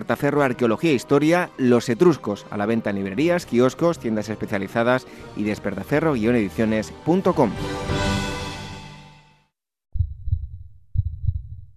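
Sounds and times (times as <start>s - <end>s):
speech: 0.0s - 8.0s
heartbeat sound effect: 9.9s - 11.7s.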